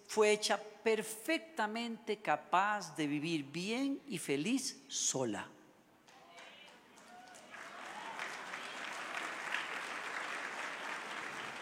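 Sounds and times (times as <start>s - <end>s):
speech: 0.2s - 5.6s
women's timid audience applause: 6.1s - 11.5s.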